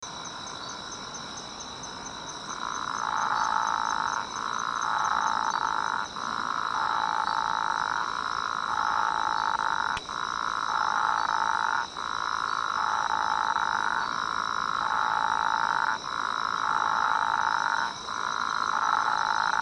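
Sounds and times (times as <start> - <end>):
Atlantic dwarf frog Physalaemus atlanticus giving buzzy croaks: 2.4 - 19.6.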